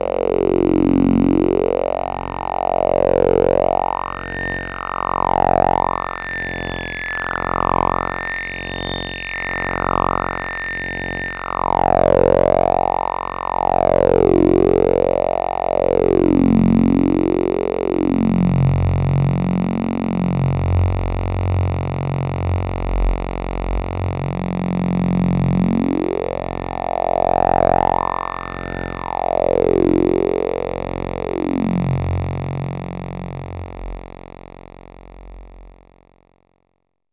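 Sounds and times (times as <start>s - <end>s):
synthesizer with filter modulation: 0.0s - 35.7s.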